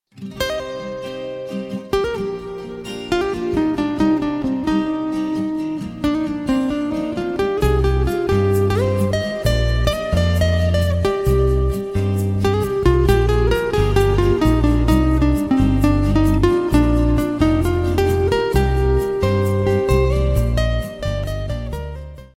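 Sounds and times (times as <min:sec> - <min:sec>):
instrumental music: 0:00.1 - 0:22.3.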